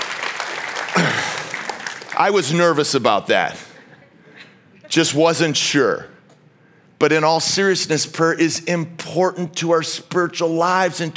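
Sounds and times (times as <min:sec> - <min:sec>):
audience clapping hands: 0:00.0 - 0:03.1
speech: 0:02.2 - 0:03.7, 0:05.0 - 0:06.2, 0:07.0 - 0:11.1.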